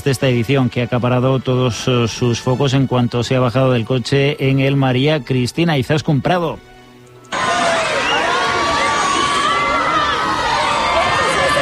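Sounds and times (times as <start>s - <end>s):
speech: 0.0s - 6.7s
large crowd cheering at a red carpet arrival: 7.3s - 11.6s.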